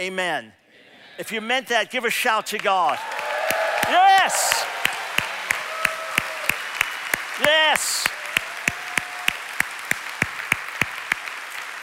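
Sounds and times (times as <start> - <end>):
speech: 0.0 - 0.6, 1.2 - 3.1, 3.8 - 4.7, 7.4 - 8.1
audience hand clapping: 2.5 - 11.8.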